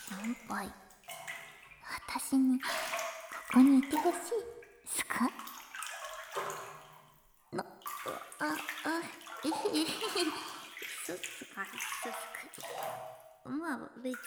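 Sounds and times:
water splashing in a bathtub: 0.0 - 14.2
speech: 0.1 - 0.9, 2.1 - 5.5, 8.4 - 10.5, 11.1 - 14.2.

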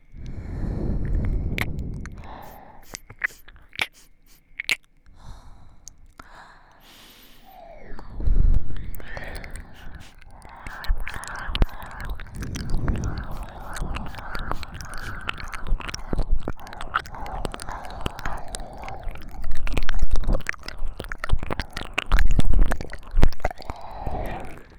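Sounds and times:
ear licking in both ears: 0.0 - 24.7
sniffing near ears: 2.2 - 4.7, 6.8 - 7.6, 9.0 - 18.3
kissing sounds: 2.8 - 4.8.

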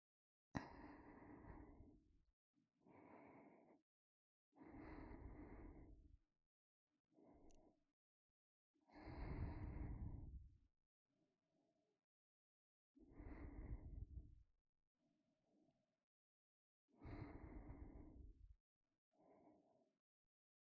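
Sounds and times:
ASMR breathing in the right ear: 0.6 - 2.1, 2.8 - 3.8, 4.6 - 6.2, 8.9 - 10.4, 13.1 - 14.3, 17.0 - 18.5, 19.2 - 19.9.

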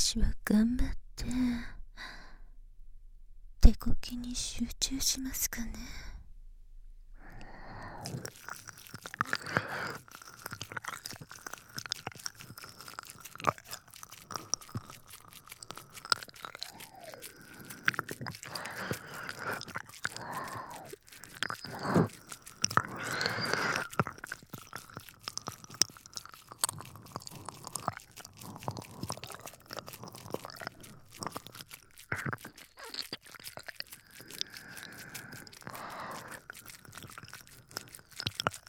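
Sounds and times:
speech: 0.0 - 1.8, 3.7 - 6.1, 8.0 - 8.7
wet ear licking: 7.2 - 38.6.

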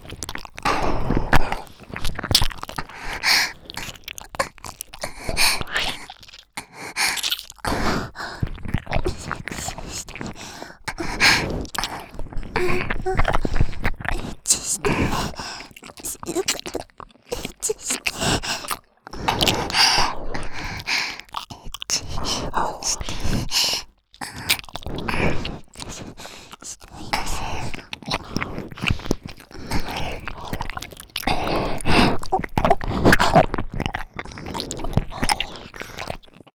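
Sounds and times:
ear licking sounds: 0.0 - 36.5
person moaning: 16.0 - 16.6.

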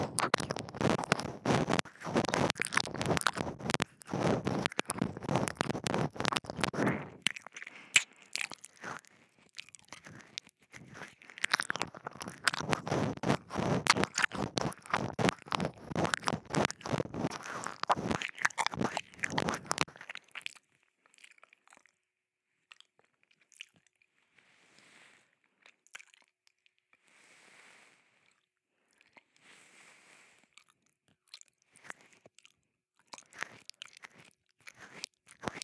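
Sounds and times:
ear licking ASMR sounds: 0.0 - 9.1, 9.9 - 20.1.

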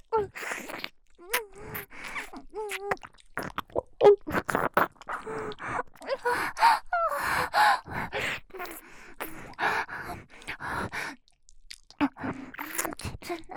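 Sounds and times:
ASMR ear licking: 0.2 - 6.2, 7.2 - 9.6, 11.2 - 13.3
ASMR deep kissing: 0.3 - 3.6, 4.3 - 5.2, 12.6 - 13.0.

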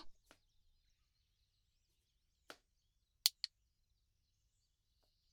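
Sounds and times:
cutting food: 3.3 - 3.5
nail clipping: 3.3 - 3.5
nail filing: 3.3 - 3.5.

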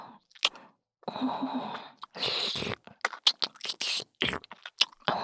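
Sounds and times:
ear licking in the left ear: 0.4 - 0.6, 2.0 - 5.1.

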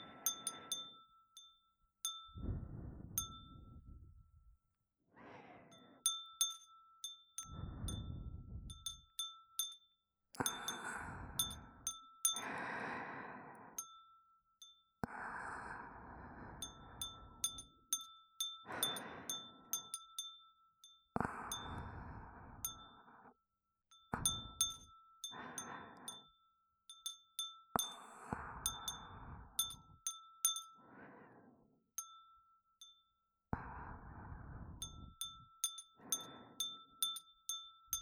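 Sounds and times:
breathing: 0.0 - 1.2, 2.3 - 4.2, 5.1 - 6.6, 7.4 - 9.0, 10.4 - 14.1, 15.0 - 20.2, 21.1 - 27.1, 27.7 - 31.8, 33.5 - 37.3
glass wind chime: 0.0 - 4.4, 5.7 - 12.7, 13.8 - 15.0, 16.6 - 22.0, 22.6 - 23.1, 23.9 - 30.8, 32.0 - 33.4, 34.8 - 38.0.

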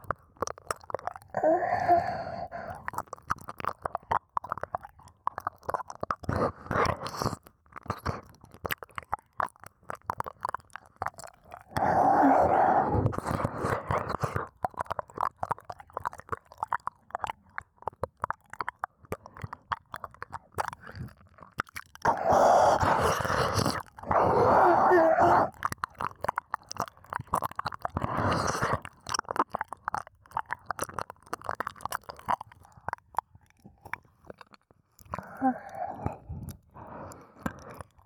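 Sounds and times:
ear licking: 0.0 - 38.0
oral sex sounds: 0.5 - 4.0, 11.0 - 17.4, 20.6 - 32.4, 33.7 - 38.0.

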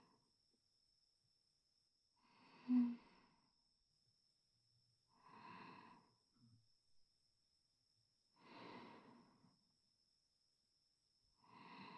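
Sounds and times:
sleeping breath: 2.3 - 3.4, 5.2 - 6.1, 8.4 - 9.5, 11.5 - 11.9.

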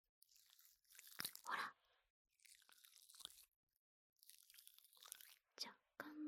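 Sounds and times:
gel fizzing and bubbling: 0.2 - 1.6, 2.4 - 3.6, 4.2 - 5.4.

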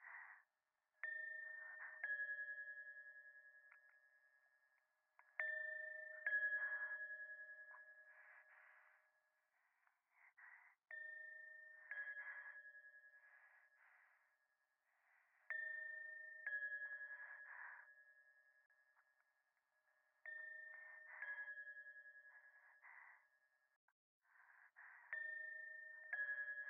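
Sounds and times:
breathing close to the right ear at a shrine: 0.0 - 2.1, 5.4 - 18.4, 20.2 - 23.5, 24.2 - 26.6.

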